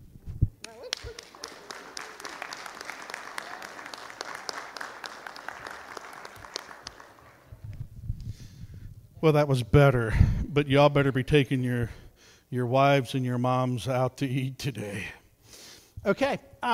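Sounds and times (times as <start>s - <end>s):
audience clapping: 0.6s - 7.8s
speech: 9.2s - 15.2s, 16.0s - 16.7s.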